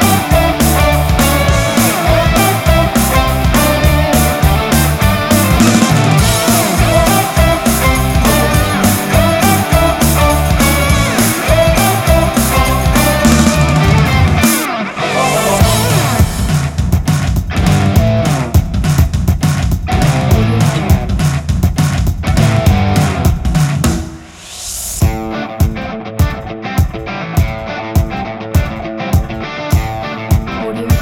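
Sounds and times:
indie rock music: 0.0s - 31.0s.

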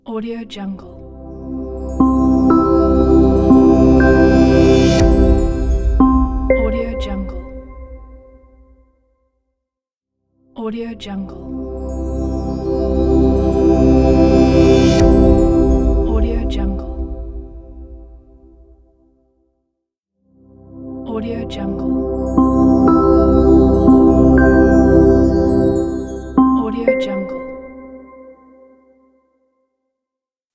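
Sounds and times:
ambient logo opener music: 1.2s - 8.8s, 11.5s - 18.9s, 20.6s - 27.0s.

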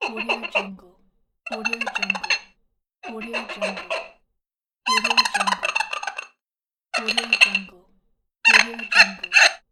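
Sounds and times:
dishes squeaking: 0.0s - 0.7s, 1.5s - 4.2s, 4.9s - 6.4s, 7.0s - 7.7s, 8.5s - 9.6s.

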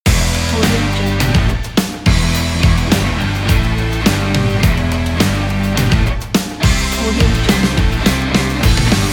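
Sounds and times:
sport rock music intro: 0.1s - 9.1s.

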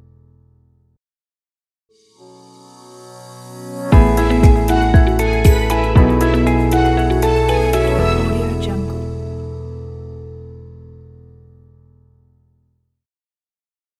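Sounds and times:
upbeat ident jingle: 4.0s - 9.4s.

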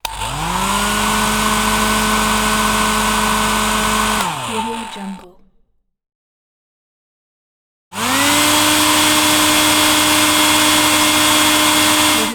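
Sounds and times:
hair dryer: 0.0s - 5.3s, 8.0s - 12.3s.

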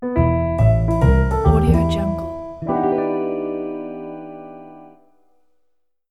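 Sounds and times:
jazz logo jingle: 0.2s - 4.7s.

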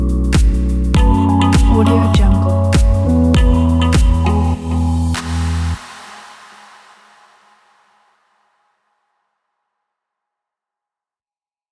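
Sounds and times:
summer chill lounge music: 0.0s - 6.0s.

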